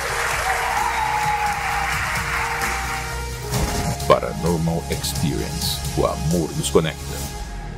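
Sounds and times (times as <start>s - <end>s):
audience applause: 0.0s - 3.4s
speech: 4.1s - 7.4s.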